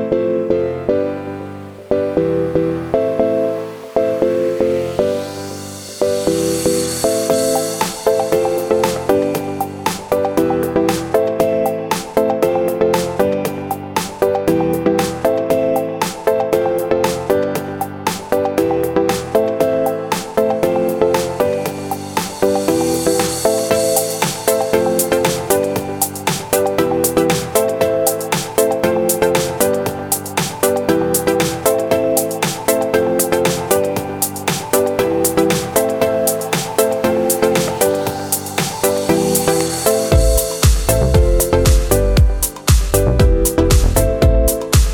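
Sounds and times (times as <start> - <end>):
funk music: 0.1 - 44.9.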